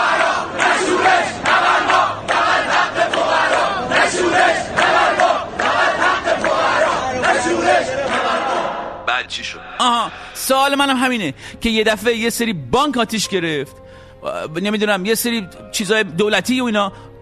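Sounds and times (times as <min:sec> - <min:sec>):
protest crowd chanting a slogan: 0:00.0 - 0:09.1
speech: 0:10.6 - 0:17.2.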